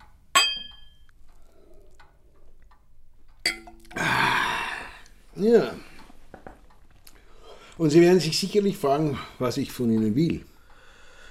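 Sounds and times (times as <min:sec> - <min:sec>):
glasses of cognac clinking in a toast: 0:00.4 - 0:01.1, 0:03.4 - 0:04.0
speech: 0:05.4 - 0:05.9, 0:07.8 - 0:10.5.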